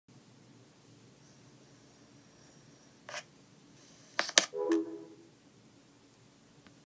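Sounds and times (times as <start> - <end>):
FaceTime call hang-up tone: 4.5 - 5.3.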